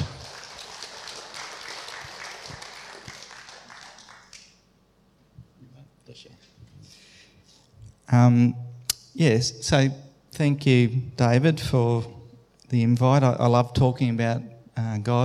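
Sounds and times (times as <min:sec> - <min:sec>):
audience clapping: 0:00.0 - 0:04.8
speech: 0:08.1 - 0:08.6, 0:09.2 - 0:15.2.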